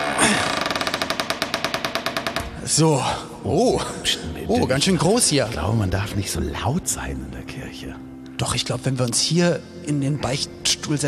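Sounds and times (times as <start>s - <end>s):
church door being opened: 0.0s - 2.8s
speech: 2.7s - 11.0s.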